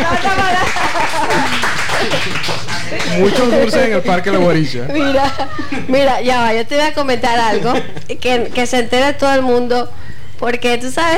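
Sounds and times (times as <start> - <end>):
applause: 0.0 - 3.9
laughter: 0.0 - 9.1
speech: 3.2 - 11.1.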